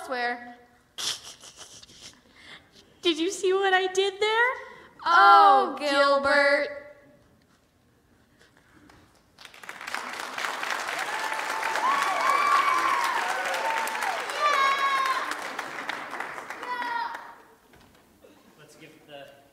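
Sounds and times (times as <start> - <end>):
speech: 0.1 - 0.6, 3.0 - 6.8
audience applause: 9.4 - 17.6.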